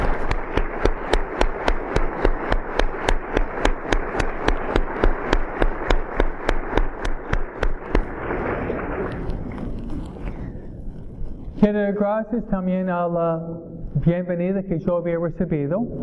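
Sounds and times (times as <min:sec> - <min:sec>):
crowd applauding in a fast even rhythm: 0:00.0 - 0:09.6
speech: 0:12.0 - 0:16.0.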